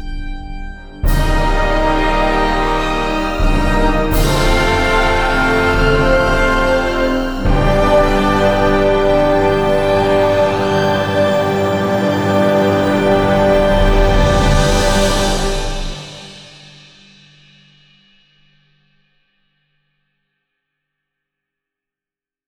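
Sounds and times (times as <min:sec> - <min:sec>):
space fanfare: 0:01.1 - 0:16.5.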